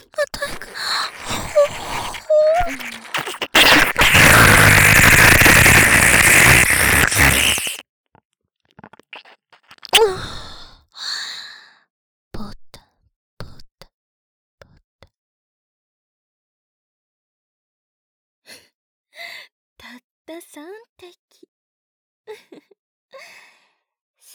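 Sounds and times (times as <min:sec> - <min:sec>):
heavy breathing, out of breath: 0:00.0 - 0:07.8.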